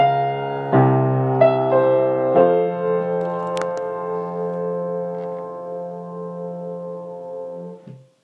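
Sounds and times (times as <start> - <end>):
Gaveau Sheraton piano: 0.0 - 8.2.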